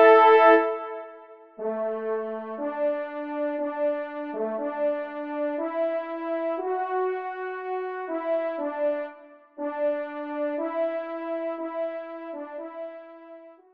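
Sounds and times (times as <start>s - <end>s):
trumpet in C major: 0.0s - 13.7s.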